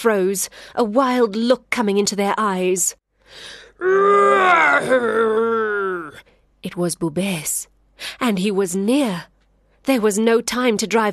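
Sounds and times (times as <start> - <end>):
speech: 0.0 - 11.1
human voice imitating a lion's roar: 3.8 - 6.2.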